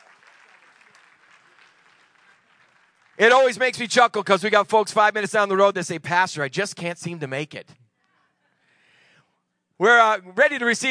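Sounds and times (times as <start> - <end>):
audience applause: 0.0 - 3.6
speech: 3.2 - 7.8, 9.8 - 10.8.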